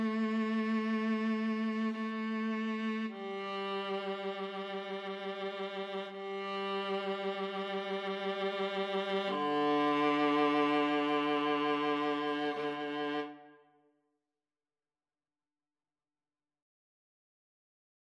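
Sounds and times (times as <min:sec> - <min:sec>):
violin: 0:00.0 - 0:13.6.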